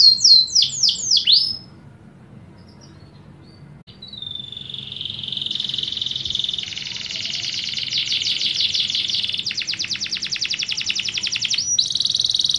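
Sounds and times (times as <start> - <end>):
canary singing descending whistled notes: 0.0 - 1.7, 2.6 - 12.5.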